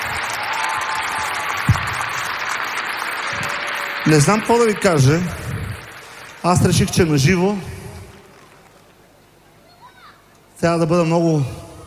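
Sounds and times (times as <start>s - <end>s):
crowd applause: 0.0s - 9.1s
low thump: 1.7s - 2.0s
speech: 4.1s - 5.4s, 6.4s - 7.8s, 10.6s - 11.6s.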